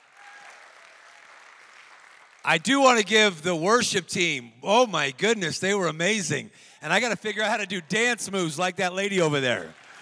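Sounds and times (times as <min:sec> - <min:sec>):
audience clapping: 0:00.0 - 0:03.1, 0:09.4 - 0:09.9
speech: 0:02.5 - 0:09.8.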